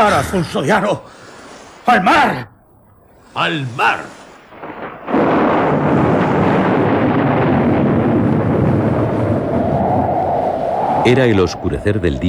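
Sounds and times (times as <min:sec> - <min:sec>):
speech: 0:00.0 - 0:01.2, 0:01.8 - 0:02.5, 0:03.4 - 0:04.2, 0:11.0 - 0:12.2
rolling thunder in a storm at sea: 0:04.5 - 0:12.0
wind roaring in a storm at sea: 0:04.5 - 0:12.2.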